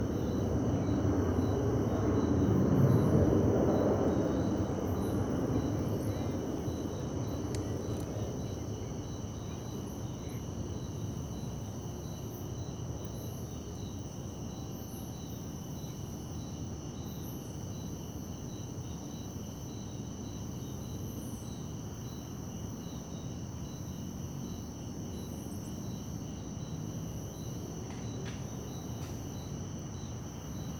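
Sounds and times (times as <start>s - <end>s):
crickets trilling: 0.0s - 30.7s
low traffic rumble: 2.0s - 9.0s.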